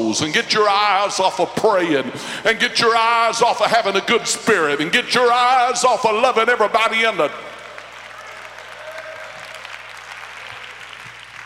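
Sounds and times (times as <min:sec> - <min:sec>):
speech: 0:00.1 - 0:07.5
about 25 people clapping hands: 0:07.3 - 0:11.4.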